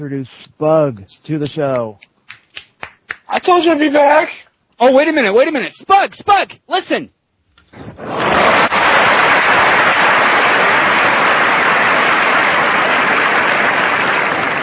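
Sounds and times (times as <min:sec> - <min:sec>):
speech: 0:00.0 - 0:02.1, 0:03.3 - 0:08.2
crowd applause: 0:08.0 - 0:14.6.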